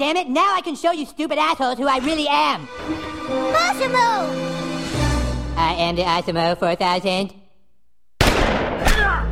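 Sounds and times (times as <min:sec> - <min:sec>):
speech: 0:00.0 - 0:04.6, 0:05.6 - 0:07.4
gunshots from a South Park cartoon scene: 0:08.2 - 0:09.2.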